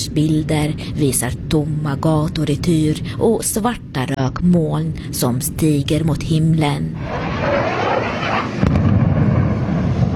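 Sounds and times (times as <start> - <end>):
speech: 0.0 - 8.4
explosions: 7.0 - 10.1.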